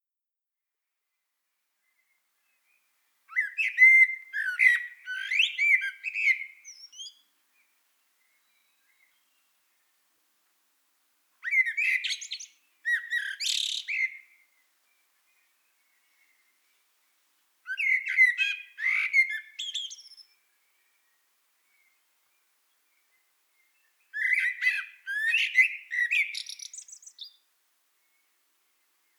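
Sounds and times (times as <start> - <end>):
common blackbird singing flute-like phrases: 3.3 - 7.2, 11.4 - 14.3, 17.7 - 20.3, 24.1 - 27.4.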